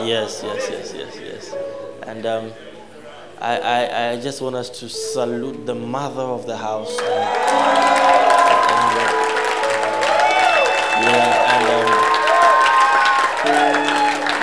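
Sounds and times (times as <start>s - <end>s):
speech: 0.0s - 2.7s, 3.4s - 9.3s, 11.0s - 12.0s
laughter: 0.0s - 3.9s, 6.9s - 14.4s
audience clapping: 6.9s - 14.4s.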